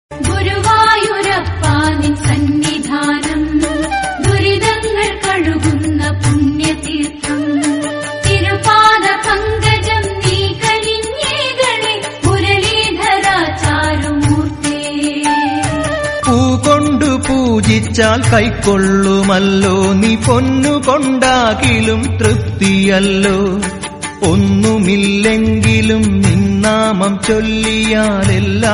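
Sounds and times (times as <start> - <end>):
Malayalam devotional song: 0.1 - 28.7.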